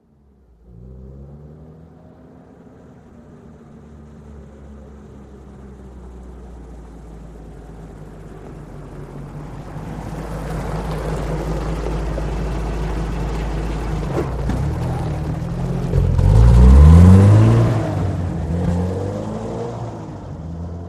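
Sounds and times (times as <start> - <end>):
UAZ vehicle slowly approaching and driving away: 0.0 - 20.8.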